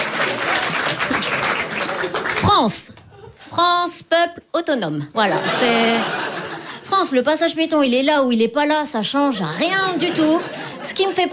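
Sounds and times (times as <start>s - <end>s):
audience applause: 0.0s - 2.7s
speech: 2.5s - 6.2s, 6.9s - 11.3s
laughter: 5.2s - 6.9s, 9.4s - 11.3s.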